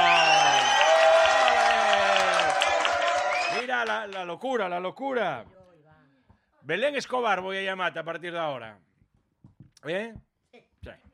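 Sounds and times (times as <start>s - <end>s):
audience applause: 0.0s - 4.2s
speech: 3.8s - 5.6s, 6.6s - 8.9s, 9.8s - 11.1s.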